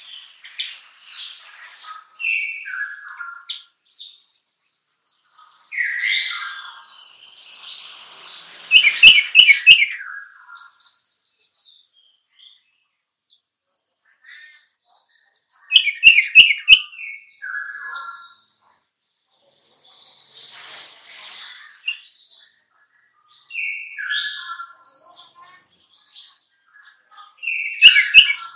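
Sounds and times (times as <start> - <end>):
sooty-headed bulbul singing: 8.7 - 10.0, 15.7 - 17.0, 27.4 - 28.5.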